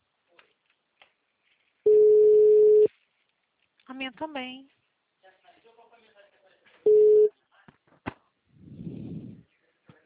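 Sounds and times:
telephone line tone beep after a dropped call: 1.9s - 2.9s, 6.9s - 7.3s
speech: 4.0s - 4.8s.

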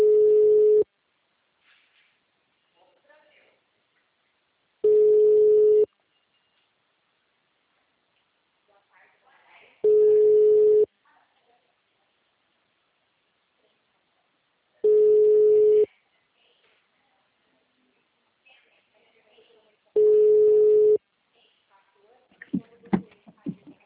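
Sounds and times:
telephone line beeps after a dropped call: 0.0s - 0.8s, 4.8s - 5.9s, 9.8s - 10.9s, 14.8s - 15.9s, 20.0s - 21.0s.

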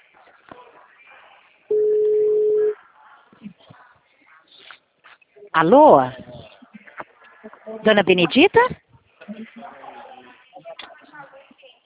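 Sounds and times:
murmured talk: 0.0s - 11.8s
telephone ringing tone while a call is placed: 1.7s - 2.8s
speech: 5.6s - 6.2s, 7.8s - 8.8s.

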